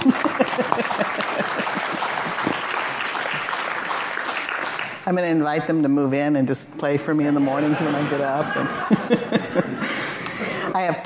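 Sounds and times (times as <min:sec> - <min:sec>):
laughter: 0:00.0 - 0:02.8, 0:07.3 - 0:10.8
person clapping: 0:00.0 - 0:05.0
speech: 0:05.1 - 0:09.3, 0:10.8 - 0:11.0.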